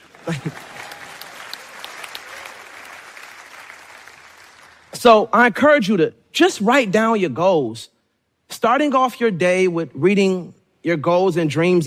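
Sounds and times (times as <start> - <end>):
audience applause: 0.0 - 4.9
speech: 0.2 - 0.7, 5.0 - 11.8.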